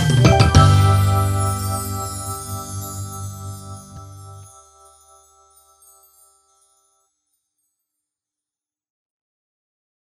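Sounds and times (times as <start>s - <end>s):
orchestra playing in G: 0.1s - 2.2s.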